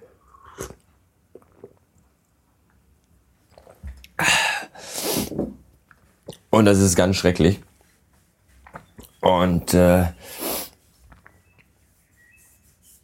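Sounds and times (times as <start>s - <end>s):
slurping sips of coffee: 0.1s - 1.8s, 4.7s - 5.3s, 10.2s - 10.8s
speech: 6.6s - 7.7s, 9.7s - 10.4s.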